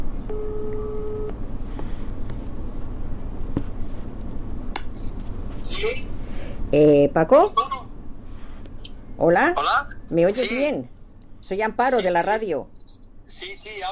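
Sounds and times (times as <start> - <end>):
mobile phone ringback tone over speakerphone during a WhatsApp call: 0.3 - 1.4
speech: 6.7 - 7.7, 9.2 - 13.9.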